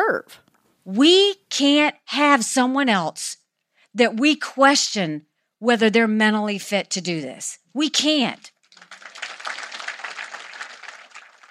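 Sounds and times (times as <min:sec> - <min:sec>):
speech: 0:00.1 - 0:03.4, 0:04.0 - 0:08.5
rally crowd applause: 0:08.6 - 0:11.5.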